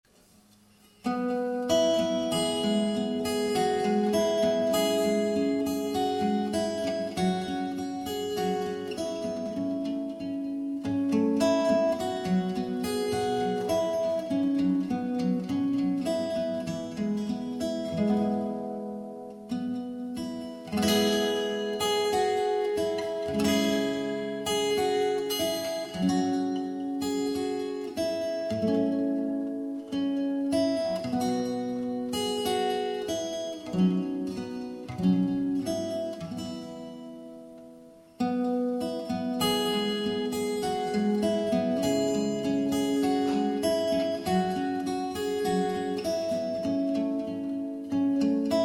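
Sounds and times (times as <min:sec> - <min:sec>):
fingerstyle guitar: 0:00.1 - 0:48.6.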